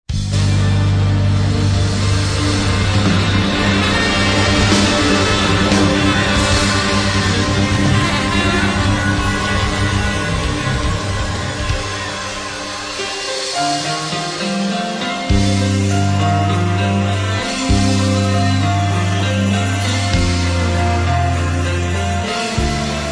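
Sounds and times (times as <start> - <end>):
instrumental intro music: 0.1 - 23.1.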